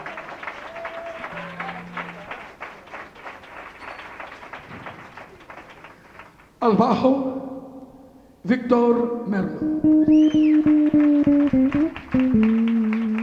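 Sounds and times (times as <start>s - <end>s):
audience applause: 0.0s - 6.5s, 10.3s - 13.2s
speech: 6.6s - 7.4s, 8.4s - 12.5s.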